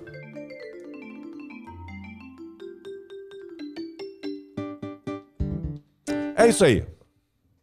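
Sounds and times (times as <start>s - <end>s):
marimba sound played on keyboard: 0.0s - 5.0s
speech: 6.4s - 6.9s.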